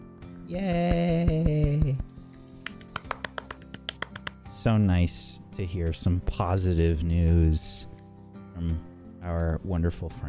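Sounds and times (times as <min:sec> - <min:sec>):
speech: 0:00.5 - 0:02.0, 0:04.6 - 0:07.9, 0:08.6 - 0:10.2
light clapping: 0:00.6 - 0:04.5.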